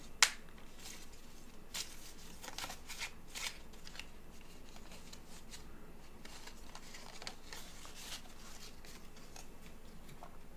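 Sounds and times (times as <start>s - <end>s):
card snap: 0.2s - 0.4s
cards drawn from a Bridget card deck rustling and flicking: 0.2s - 10.4s.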